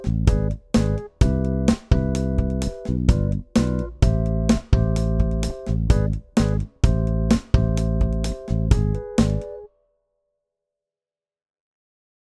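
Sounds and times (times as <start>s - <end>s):
music loops: 0.0s - 9.6s.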